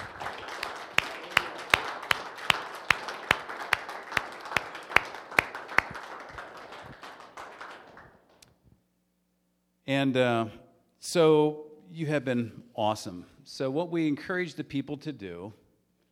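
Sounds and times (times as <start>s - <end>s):
standing ovation applause in church: 0.0s - 8.4s
speech: 9.9s - 15.6s.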